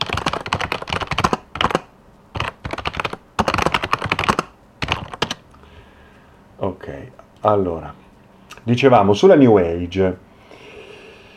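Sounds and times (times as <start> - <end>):
typing on a computer keyboard while writing something: 0.0 - 5.4
speech: 7.4 - 8.0, 8.7 - 10.2.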